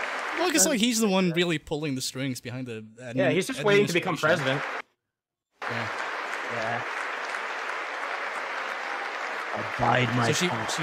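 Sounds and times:
applause: 0.0s - 1.2s, 3.7s - 4.8s, 5.6s - 10.8s
speech: 0.4s - 4.9s, 5.7s - 7.0s, 9.6s - 10.8s.

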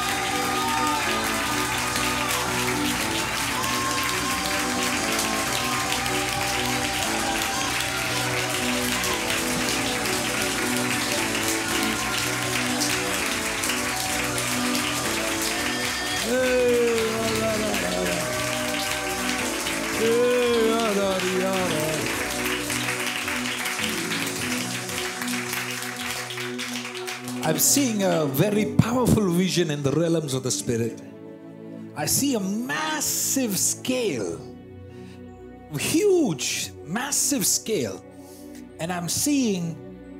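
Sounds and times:
audience clapping: 0.0s - 29.0s
speech: 27.7s - 31.1s, 32.0s - 34.5s, 35.7s - 38.1s, 38.8s - 39.8s.

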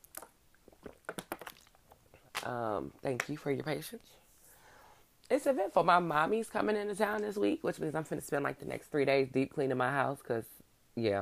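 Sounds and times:
person drinking a sip of water: 0.0s - 2.4s
speech: 2.4s - 4.2s, 5.3s - 11.1s.

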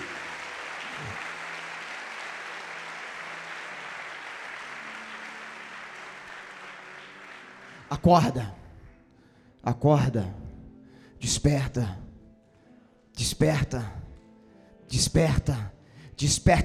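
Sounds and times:
audience applauding loudly: 0.0s - 8.9s
speech: 7.9s - 8.6s, 9.6s - 10.4s, 11.2s - 12.0s, 13.2s - 14.0s, 14.9s - 16.6s.

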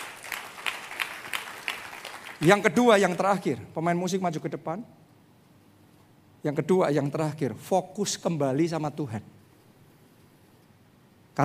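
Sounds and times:
audience applause: 0.0s - 2.6s
speech: 2.4s - 5.0s, 6.4s - 9.4s.

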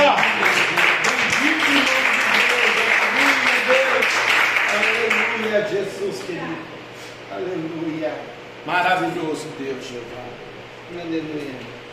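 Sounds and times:
audience clapping: 0.0s - 6.3s
speech: 8.6s - 11.7s.

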